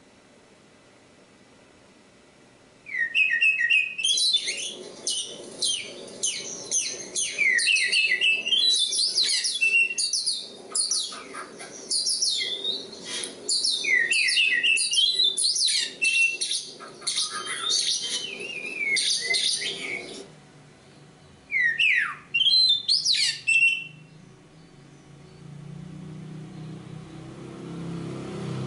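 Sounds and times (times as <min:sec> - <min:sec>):
low humming background: 0:00.0 - 0:28.6
Oriental magpie-robin singing: 0:02.9 - 0:20.3, 0:21.2 - 0:25.5.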